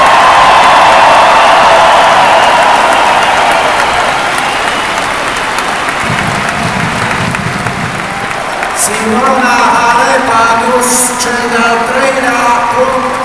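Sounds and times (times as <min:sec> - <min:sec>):
scattered cheers: 0:00.0 - 0:09.3
loud applause from a large audience: 0:00.0 - 0:10.7, 0:11.8 - 0:13.2.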